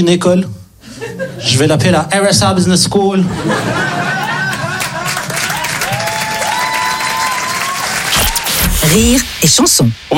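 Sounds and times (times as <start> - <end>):
speech: 0.0 - 0.6, 1.4 - 4.2, 8.8 - 10.1
laughter: 3.2 - 5.6
audience applause: 4.2 - 8.4.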